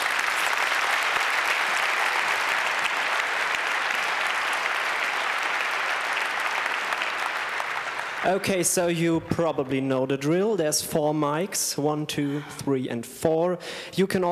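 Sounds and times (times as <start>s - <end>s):
audience applause: 0.0s - 8.9s
speech: 8.2s - 14.2s.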